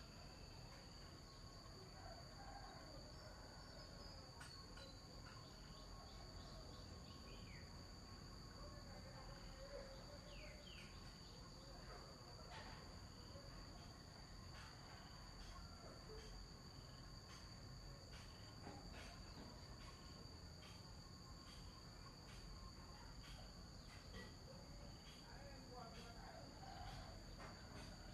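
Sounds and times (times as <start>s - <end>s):
morning ambience in Vietnam: 0.0s - 28.1s.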